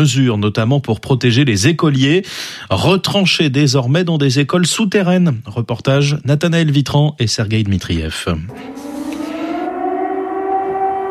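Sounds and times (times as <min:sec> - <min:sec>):
speech: 0:00.0 - 0:08.9
air raid sirens wailing over a city: 0:08.5 - 0:11.1.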